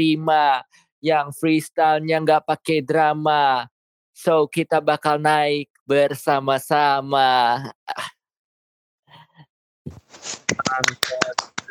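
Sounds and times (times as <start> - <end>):
speech: 0.0 - 8.2, 10.2 - 11.6
quiet hand clapping: 10.2 - 11.6.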